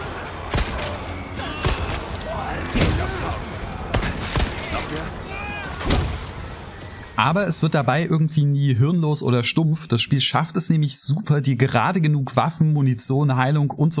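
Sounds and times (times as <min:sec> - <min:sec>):
continuous video game soundscape: 0:00.0 - 0:10.6
speech: 0:07.2 - 0:13.9.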